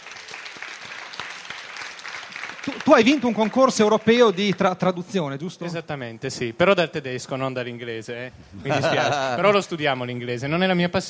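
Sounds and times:
audience applause at an event: 0:00.0 - 0:04.8
speech: 0:02.6 - 0:11.0
laughter: 0:08.6 - 0:09.7.

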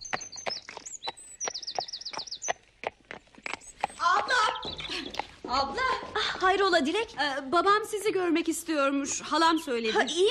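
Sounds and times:
bright, warbling birdsong: 0:00.0 - 0:07.4
horse with a rider walking, hooves clip-clopping: 0:00.0 - 0:07.4
speech: 0:05.5 - 0:10.2.

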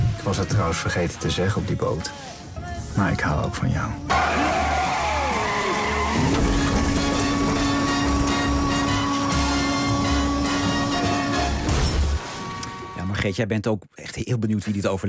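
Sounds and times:
speech: 0:00.2 - 0:04.7, 0:13.2 - 0:15.0
row of cars crashing into each other in a chain collision: 0:04.1 - 0:13.0
tires screeching: 0:04.1 - 0:13.0.

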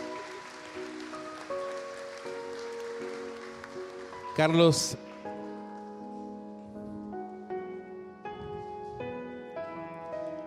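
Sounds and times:
congregation applause welcoming a preacher at a Sunday church service: 0:00.0 - 0:05.4
held keyboard chords: 0:00.0 - 0:10.4
speech: 0:04.4 - 0:05.0.

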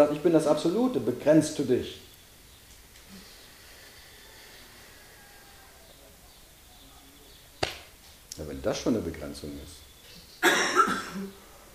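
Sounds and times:
speech: 0:00.0 - 0:02.1, 0:08.6 - 0:09.8, 0:10.4 - 0:11.4
person coughing: 0:10.4 - 0:11.3.

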